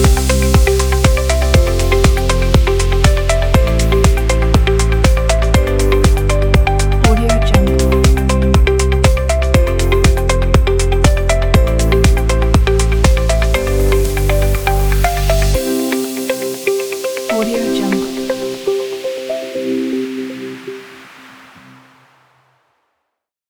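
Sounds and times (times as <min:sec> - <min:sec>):
music: 0:00.0 - 0:22.4.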